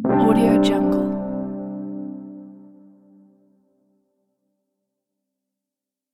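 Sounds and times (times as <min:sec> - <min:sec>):
dreamy dance music: 0:00.2 - 0:01.7.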